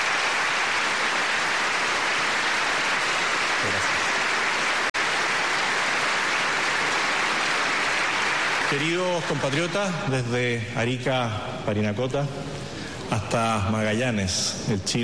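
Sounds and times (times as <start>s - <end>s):
large audience applauding: 0.0s - 10.1s
speech: 8.7s - 15.0s.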